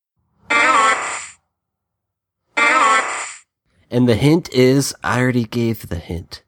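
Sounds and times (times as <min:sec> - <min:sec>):
Oddish cry from a Pokémon video game: 0:00.5 - 0:01.4, 0:02.6 - 0:03.4
speech: 0:03.9 - 0:06.4.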